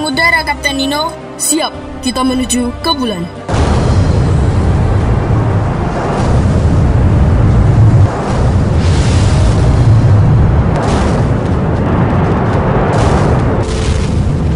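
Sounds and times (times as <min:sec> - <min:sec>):
speech: 0:00.5 - 0:03.5
rocket launch roar: 0:03.5 - 0:14.5.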